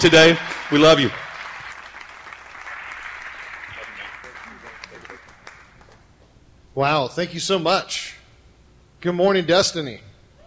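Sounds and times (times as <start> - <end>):
speech: 0.0 - 1.2, 6.8 - 8.2, 9.0 - 10.1
church congregation clapping to welcome a family home: 0.0 - 6.3.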